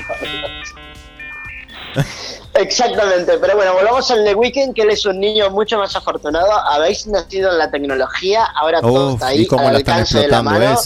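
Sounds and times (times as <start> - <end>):
dial-up internet modem connection noise: 0.0 - 3.2
speech: 0.2 - 10.8.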